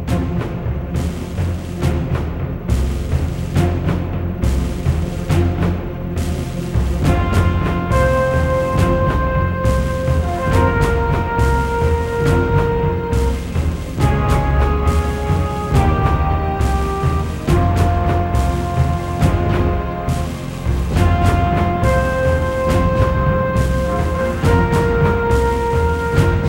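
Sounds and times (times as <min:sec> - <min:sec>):
music loop: 0:00.2 - 0:26.4.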